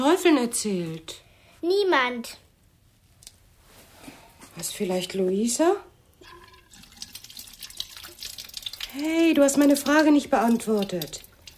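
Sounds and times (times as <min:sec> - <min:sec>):
speech: 0:00.0 - 0:02.4, 0:04.6 - 0:06.4, 0:08.9 - 0:11.3
water running from a tap as someone washes their face at a sink: 0:06.2 - 0:11.5.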